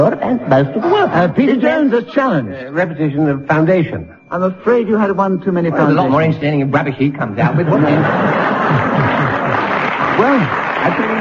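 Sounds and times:
speech: 0.0 - 9.1, 10.2 - 11.1
laughter: 0.2 - 3.4, 7.3 - 11.1
audience applause: 8.2 - 11.1.

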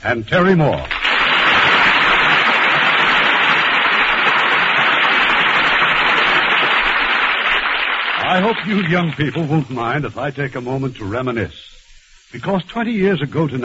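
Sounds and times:
speech: 0.0 - 1.0, 8.3 - 13.6
audience applause: 0.8 - 9.8.

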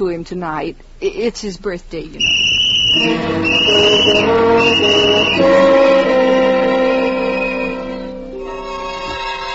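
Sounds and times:
speech: 0.0 - 6.4
boy blowing a whistle: 2.2 - 8.4.

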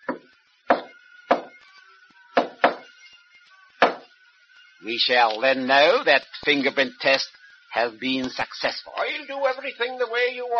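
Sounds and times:
knocking on a door: 0.1 - 1.5, 2.4 - 2.8
speech: 4.8 - 10.5.

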